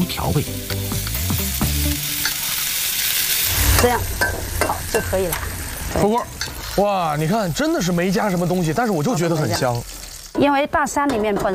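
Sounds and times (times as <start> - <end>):
speech: 0.0 - 1.0, 3.8 - 9.8, 10.4 - 11.5
cured pork slices and arrowhead slices sizzling in a pan: 0.0 - 10.5.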